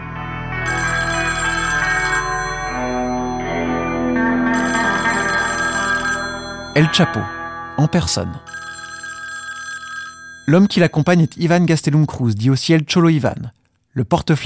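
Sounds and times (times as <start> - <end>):
phone ringtone with warbling melodic tones: 0.6 - 11.6
speech: 6.8 - 8.6, 10.4 - 14.4.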